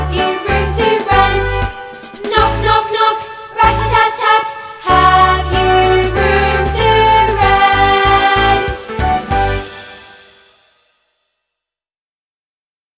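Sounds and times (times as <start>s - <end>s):
vocals: 0.0s - 9.1s.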